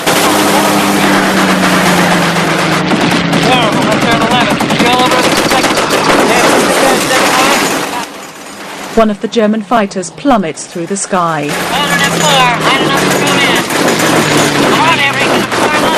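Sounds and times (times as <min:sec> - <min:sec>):
machine gun fire from a bomber's top turret: 0:00.0 - 0:08.0, 0:11.5 - 0:15.9
speech: 0:09.0 - 0:14.0.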